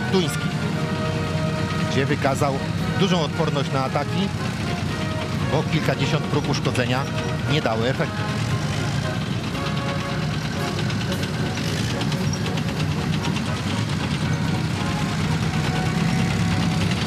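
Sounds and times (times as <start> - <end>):
Leopard 2A4 tank engine rumbling: 0.0 - 17.0
speech: 0.1 - 0.5, 2.0 - 4.6, 5.5 - 8.4
faint mechanical clatter: 4.4 - 17.0.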